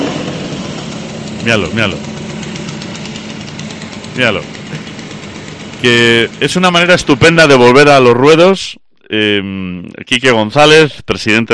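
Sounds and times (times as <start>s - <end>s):
Vespino moped engine idling: 0.0s - 8.0s
speech: 1.4s - 2.2s, 4.2s - 4.8s, 5.8s - 11.5s.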